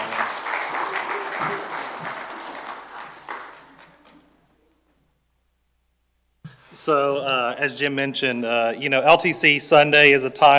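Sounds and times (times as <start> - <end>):
audience applause: 0.0 - 4.4
speech: 6.8 - 10.5.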